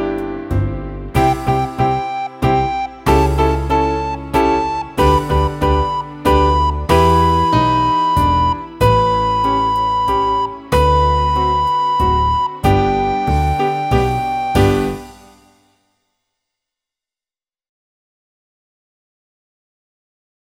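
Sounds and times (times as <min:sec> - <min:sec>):
waltz practice music: 0:00.0 - 0:15.4.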